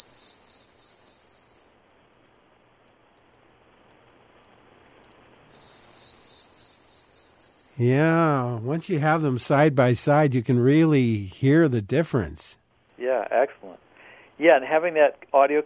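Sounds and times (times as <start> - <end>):
Prairie Warbler song: 0.0 - 1.7, 5.6 - 7.9
speech: 7.8 - 12.6, 14.4 - 15.6.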